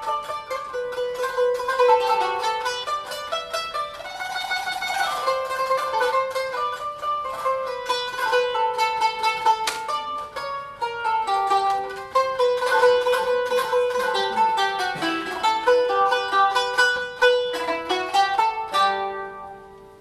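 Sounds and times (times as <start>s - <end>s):
qanun: 0.0s - 19.9s.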